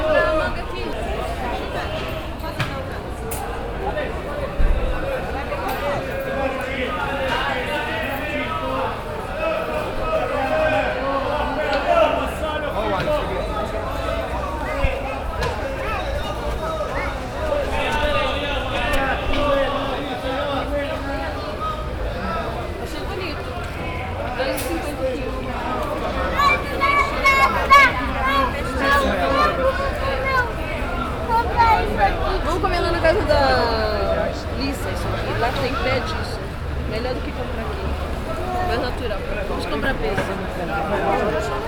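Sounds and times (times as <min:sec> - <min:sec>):
market ambience in Brazil: 0:00.0 - 0:41.6.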